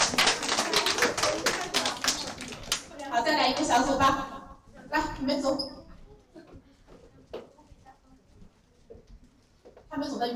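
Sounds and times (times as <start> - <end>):
classroom applause for a group of students: 0.0 - 3.9
speech: 3.2 - 4.3, 4.9 - 5.8, 10.0 - 10.3.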